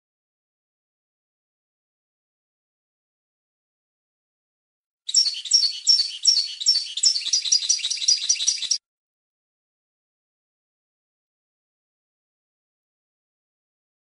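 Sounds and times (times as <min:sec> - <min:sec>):
European goldfinch song of tinkling twitter: 0:05.1 - 0:08.8.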